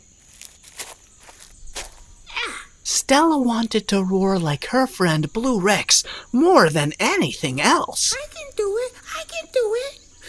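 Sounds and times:
tiny dinosaur feet stomping: 0.0 - 2.2
quiet hiss: 0.0 - 10.2
speech: 3.1 - 8.7.

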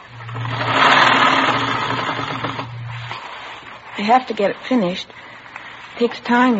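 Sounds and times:
sewing machine stitching rows of ruffles: 0.0 - 3.6
speech: 4.0 - 5.3, 6.0 - 6.5.

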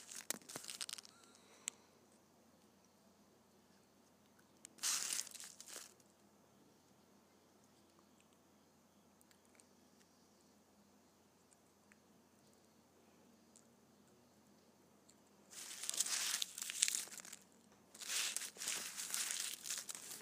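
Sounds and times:
candy wrappers crinkling: 0.0 - 1.4, 4.6 - 6.0, 15.5 - 20.2
low quiet hum: 0.0 - 20.2.

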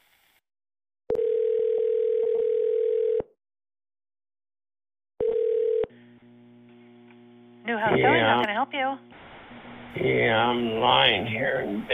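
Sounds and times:
telephone dial tone: 1.1 - 3.3, 5.2 - 6.0
speech: 7.8 - 9.2, 10.0 - 11.9.

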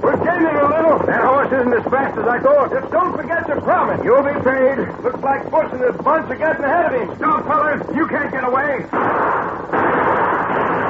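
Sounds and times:
harsh noise roar: 0.0 - 10.8
speech: 1.5 - 10.0
gunshot: 8.9 - 10.8.

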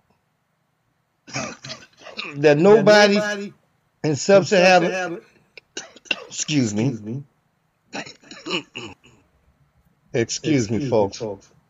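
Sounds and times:
man with COPD coughing and choking in an overheated room: 1.3 - 2.6, 5.7 - 6.5, 7.9 - 9.2
speech: 2.2 - 5.3, 6.3 - 7.3, 7.9 - 8.9, 10.1 - 11.6.

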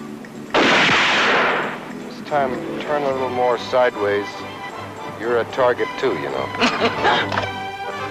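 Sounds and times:
handgun shot fired after drawing from a holster: 0.5 - 1.8
speech: 2.3 - 4.6, 5.2 - 7.5
laughter: 6.4 - 8.0.

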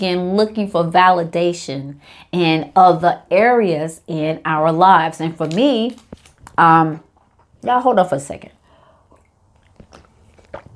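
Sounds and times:
speech: 0.0 - 8.6
person chewing almonds: 9.0 - 10.7.

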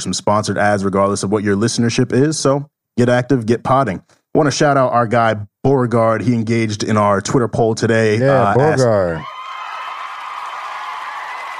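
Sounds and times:
speech: 0.0 - 9.3
applause: 9.2 - 11.5.

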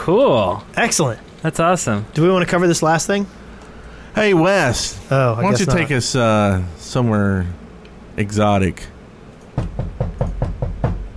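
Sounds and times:
speech: 0.0 - 3.4, 4.2 - 7.6, 8.2 - 8.9
knocking on a door: 9.6 - 11.1.

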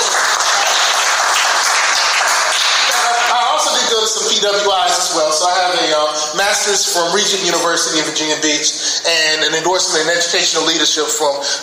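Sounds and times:
crowd applauding: 0.0 - 3.9
speech: 4.2 - 11.6.

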